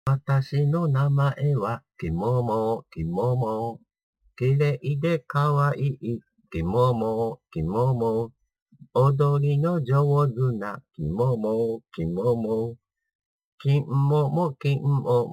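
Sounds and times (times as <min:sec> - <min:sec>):
person singing a song: 0:00.1 - 0:03.8, 0:04.4 - 0:08.3, 0:09.0 - 0:12.8, 0:13.6 - 0:15.3.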